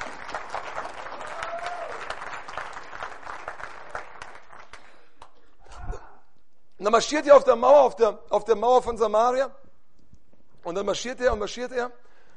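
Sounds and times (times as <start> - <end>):
audience clapping: 0.0 - 5.6
speech: 6.8 - 9.6, 10.6 - 12.0.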